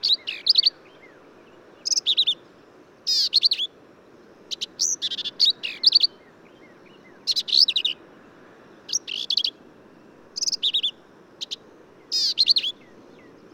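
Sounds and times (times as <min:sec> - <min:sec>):
Black-capped Vireo: 0:00.0 - 0:02.5, 0:03.1 - 0:03.8, 0:04.5 - 0:08.1, 0:08.9 - 0:09.6, 0:10.4 - 0:13.5.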